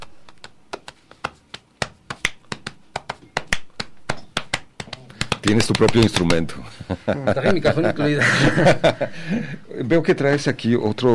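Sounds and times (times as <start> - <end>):
body percussion claps and slaps of hands against the body: 0.0 - 6.7
speech: 5.4 - 11.1
laughter: 6.6 - 9.6.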